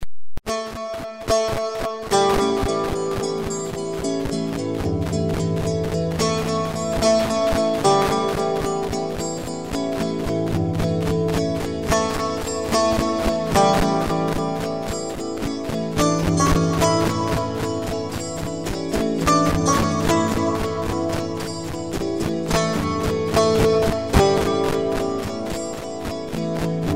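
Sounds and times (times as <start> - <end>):
alap improvisation: 0.5 - 26.9.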